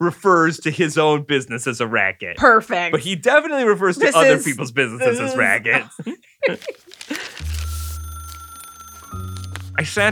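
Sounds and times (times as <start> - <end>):
speech: 0.0 - 7.2, 9.8 - 10.0
laughter: 3.8 - 7.4
telephone ringing: 7.2 - 9.8.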